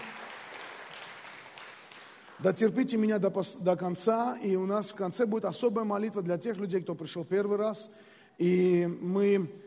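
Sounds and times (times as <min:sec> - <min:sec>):
audience applause: 0:00.0 - 0:02.4
speech: 0:02.4 - 0:09.6.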